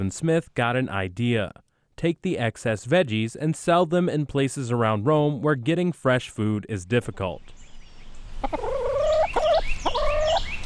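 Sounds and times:
speech: 0.0s - 7.6s, 8.4s - 8.6s
chickens clucking: 8.3s - 10.6s.

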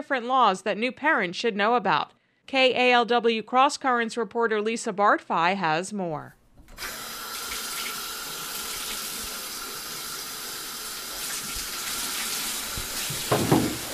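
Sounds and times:
speech: 0.0s - 7.0s
tap water running for a baby's bath: 6.6s - 13.9s.

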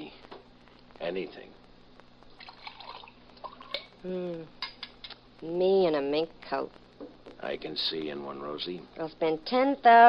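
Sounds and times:
speech: 1.1s - 1.6s, 4.0s - 4.6s, 5.4s - 10.0s
coffee dripping: 2.3s - 3.9s
coffee pouring into a cup: 2.3s - 3.9s.

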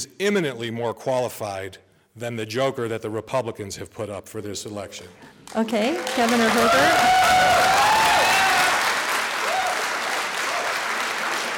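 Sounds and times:
speech: 0.1s - 7.9s
crowd applauding: 5.3s - 11.5s.

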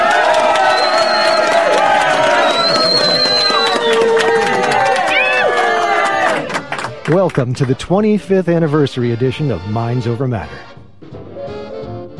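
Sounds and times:
studio audience cheering and whooping at a radio quiz show: 0.0s - 7.2s
whistles: 0.6s - 4.5s
speech: 7.2s - 10.8s.

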